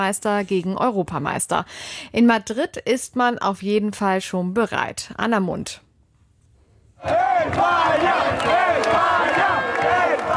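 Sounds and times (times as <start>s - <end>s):
speech: 0.0s - 5.8s, 7.0s - 10.3s
Spanish football fans in Madrid chanting and singing after a World Cup win: 7.0s - 10.3s.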